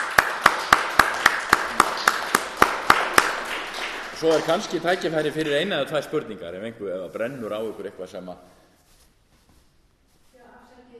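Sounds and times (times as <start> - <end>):
softer scattered audience applause: 0.0 - 5.7
audience sharp claps for a guest speaker: 0.0 - 5.8
speech: 4.2 - 8.6.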